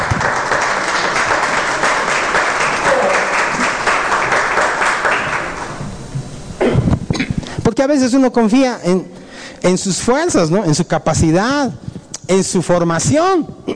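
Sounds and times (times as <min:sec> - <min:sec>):
audience applause: 0:00.0 - 0:05.8
speech: 0:07.8 - 0:13.7.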